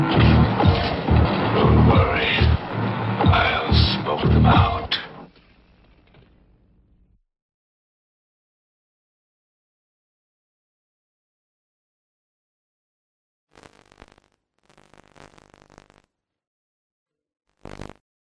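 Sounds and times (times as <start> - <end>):
instrumental lo-fi hip-hop music: 0.0 - 5.0.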